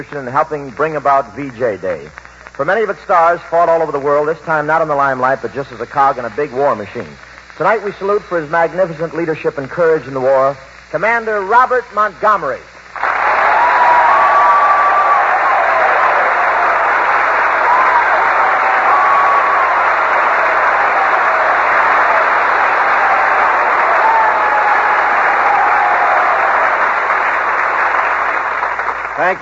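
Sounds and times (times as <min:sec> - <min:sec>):
speech: 0:00.0 - 0:13.1
large audience applause: 0:13.0 - 0:29.3.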